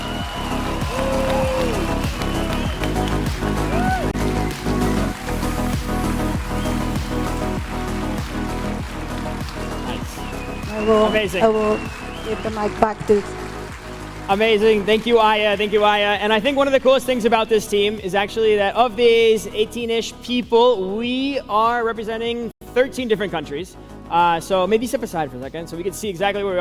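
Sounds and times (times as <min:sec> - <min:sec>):
applause for the team: 0:00.0 - 0:16.8
speech: 0:10.9 - 0:13.4, 0:14.3 - 0:26.5.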